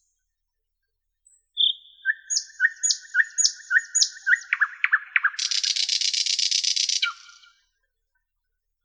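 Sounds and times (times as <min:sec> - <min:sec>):
common nightingale singing: 0:01.3 - 0:07.6.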